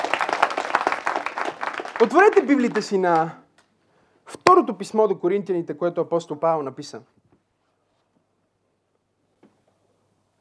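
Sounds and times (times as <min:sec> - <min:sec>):
audience applauding: 0:00.0 - 0:03.4
speech: 0:02.0 - 0:03.4, 0:04.5 - 0:07.2.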